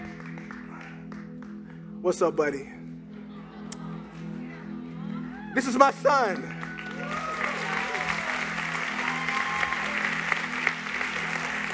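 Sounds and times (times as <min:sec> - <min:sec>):
audience clapping: 0:00.0 - 0:01.8, 0:06.1 - 0:11.7
speech: 0:02.0 - 0:02.8, 0:05.6 - 0:07.2.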